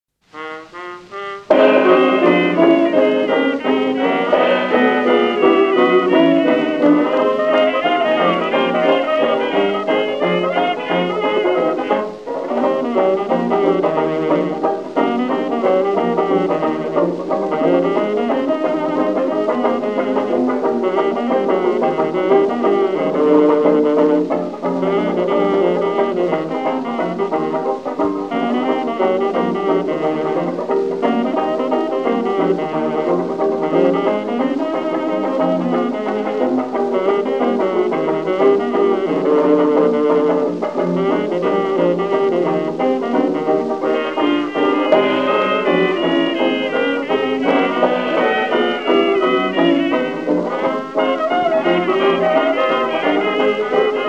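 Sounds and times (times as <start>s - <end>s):
blues music: 0.2s - 54.0s.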